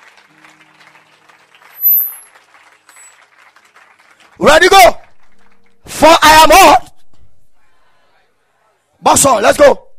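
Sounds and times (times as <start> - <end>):
audience clapping hands: 0.0 - 6.0
speech: 4.4 - 5.0, 6.0 - 6.8, 9.1 - 9.8.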